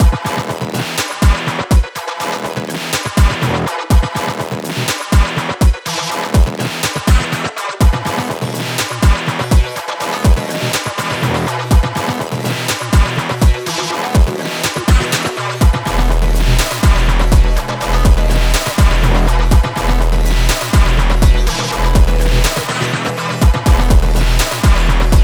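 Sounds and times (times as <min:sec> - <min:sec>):
heavy electronic music: 0:00.0 - 0:25.2.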